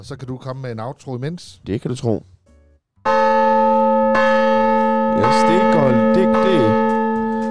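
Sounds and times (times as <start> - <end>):
speech: 0.0 - 2.4, 5.2 - 6.8
church tower bells ringing: 3.0 - 7.4.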